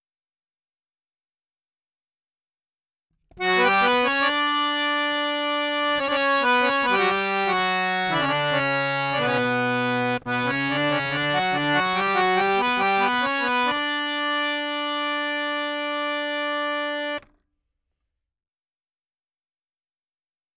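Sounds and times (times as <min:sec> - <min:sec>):
harmonium: 0:03.3 - 0:17.3.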